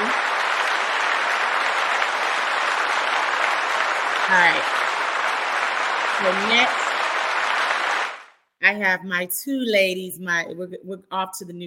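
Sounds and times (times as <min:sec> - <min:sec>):
crowd applause: 0:00.0 - 0:08.4
speech: 0:04.3 - 0:04.8, 0:06.2 - 0:06.8, 0:08.6 - 0:11.6.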